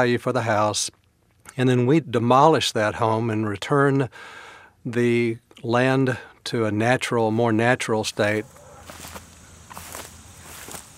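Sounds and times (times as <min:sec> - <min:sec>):
speech: 0:00.0 - 0:09.2
footsteps crunching through grass and brush along White's Creek in Nashville: 0:08.0 - 0:10.9.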